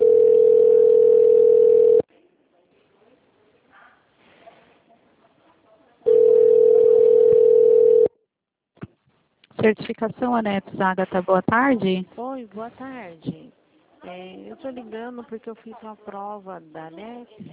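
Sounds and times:
telephone ringback tone connecting to a customer service line: 0.0 - 2.0, 6.1 - 8.1
speech: 9.6 - 17.5.

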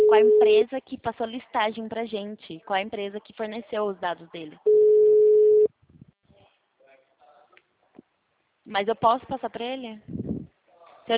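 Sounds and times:
telephone tone after a dropped call: 0.0 - 0.5, 4.7 - 5.7
speech: 0.1 - 4.9, 8.7 - 10.2.

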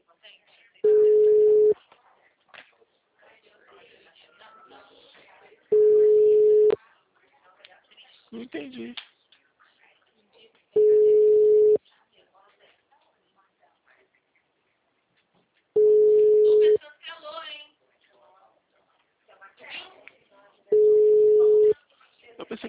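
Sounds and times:
voices talking quietly: 0.0 - 22.6
telephone ringing with no answer: 0.8 - 1.8, 5.7 - 6.8, 10.8 - 11.8, 15.8 - 16.8, 20.7 - 21.8
speech: 8.5 - 9.1.

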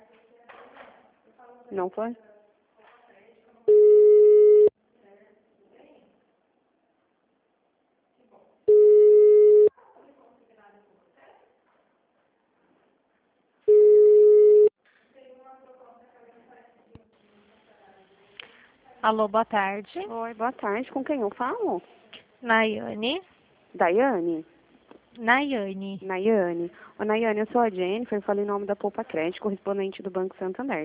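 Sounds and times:
speech: 1.7 - 2.3, 19.1 - 24.5, 25.2 - 30.8
unanswered telephone ringback tones: 3.7 - 4.7, 8.7 - 9.7, 13.7 - 14.7.

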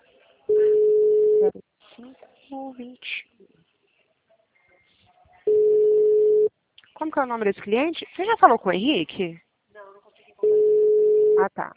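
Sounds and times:
faint low noise: 0.0 - 11.7
outgoing phone call's ringback tone: 0.5 - 1.5, 5.5 - 6.5, 10.4 - 11.4
speech: 1.4 - 3.6, 7.0 - 9.4, 11.4 - 11.7.

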